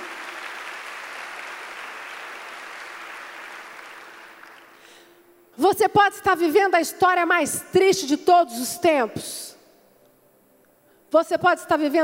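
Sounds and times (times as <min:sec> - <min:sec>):
applause: 0:00.0 - 0:05.2
speech: 0:05.6 - 0:09.6, 0:11.1 - 0:12.0.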